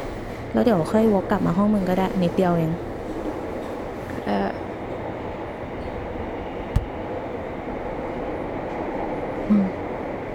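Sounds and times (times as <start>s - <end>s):
underground subway train running: 0.0s - 10.3s
speech: 0.5s - 2.9s
sharp clunk: 6.7s - 7.0s.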